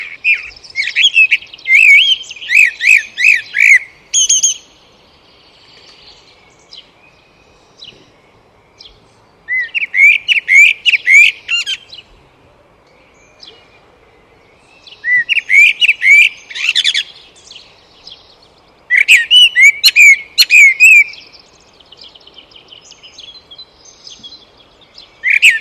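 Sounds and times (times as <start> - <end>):
Eurasian blackbird singing: 0.0 - 25.5.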